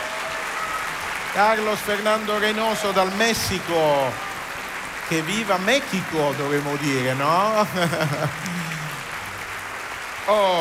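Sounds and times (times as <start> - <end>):
theatre audience applause: 0.0 - 10.5
speech: 1.4 - 4.3, 5.1 - 8.9, 10.3 - 10.5
laughter: 7.2 - 9.3.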